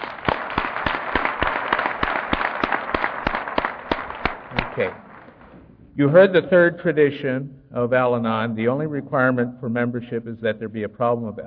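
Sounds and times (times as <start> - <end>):
crowd applauding: 0.0 - 5.5
speech: 4.8 - 5.0, 6.0 - 11.4.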